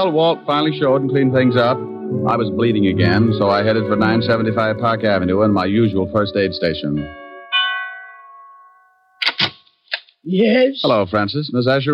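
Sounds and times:
speech: 0.0 - 7.2, 10.2 - 11.9
doorbell chime: 7.0 - 9.2.

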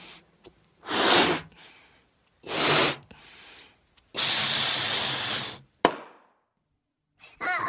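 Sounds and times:
balloon deflating and popping: 0.8 - 1.6, 2.4 - 3.1, 4.1 - 6.2.

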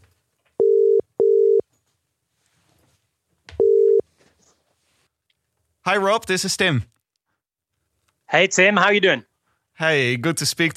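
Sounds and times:
outgoing call ringback tone: 0.6 - 1.6, 3.6 - 4.0
speech: 5.8 - 7.0, 8.3 - 10.7.

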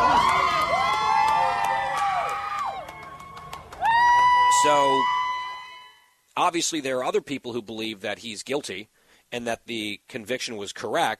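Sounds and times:
scattered sharp claps or clicks: 0.0 - 4.2
supporters cheering outside a courthouse: 0.0 - 6.1
speech: 4.6 - 5.2, 6.4 - 11.1.

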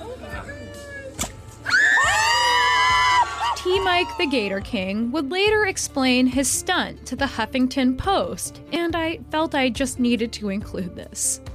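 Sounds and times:
crowd cheering with high-pitched shouts and screams: 1.6 - 4.5
speech: 4.0 - 11.5.

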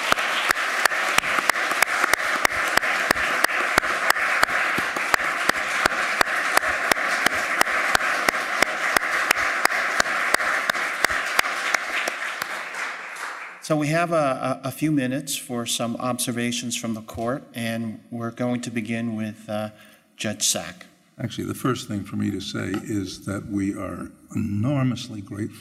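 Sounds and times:
audience applause: 0.0 - 13.6
speech: 13.7 - 25.5.

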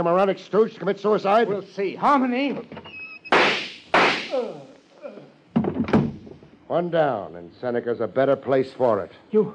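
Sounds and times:
speech: 0.0 - 3.0, 6.7 - 9.5
loud sharp gunshots: 3.3 - 4.3.

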